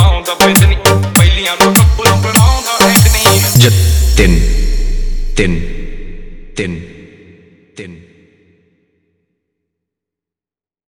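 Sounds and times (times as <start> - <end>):
remixed electronic music: 0.0 - 6.9.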